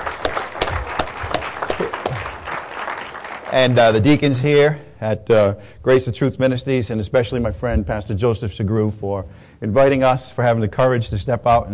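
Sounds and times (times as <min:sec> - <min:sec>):
audience clapping: 0:00.0 - 0:04.2
speech: 0:03.5 - 0:11.7.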